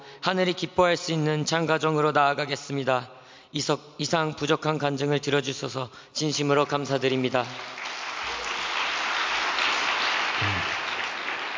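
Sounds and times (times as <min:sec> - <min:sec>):
speech: 0:00.2 - 0:07.9
audience applause: 0:07.2 - 0:11.5.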